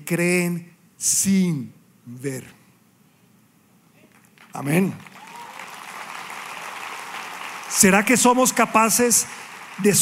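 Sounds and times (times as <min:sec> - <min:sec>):
speech: 0:00.1 - 0:02.6, 0:04.5 - 0:05.1, 0:07.8 - 0:10.0
audience applauding: 0:04.2 - 0:10.0.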